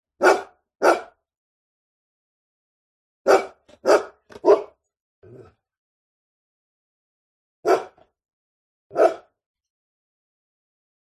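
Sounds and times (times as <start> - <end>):
medium-sized dog barking: 0.2 - 1.2, 3.3 - 5.4, 7.6 - 8.0, 8.9 - 9.4.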